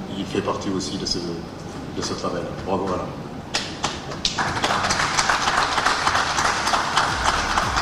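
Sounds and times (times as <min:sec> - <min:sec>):
speech: 0:00.2 - 0:03.2
applause in a press conference room: 0:03.6 - 0:07.8.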